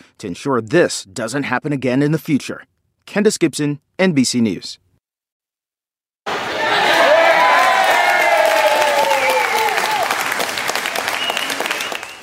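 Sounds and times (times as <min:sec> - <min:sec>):
speech: 0:00.2 - 0:04.8
Dutch soccer fans cheering: 0:06.3 - 0:12.2.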